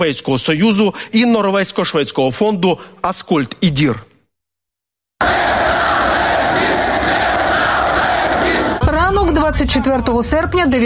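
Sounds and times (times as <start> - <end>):
speech: 0.0 - 4.1, 9.6 - 10.8
large crowd of protesters roaring and chanting at a rally: 5.2 - 8.9.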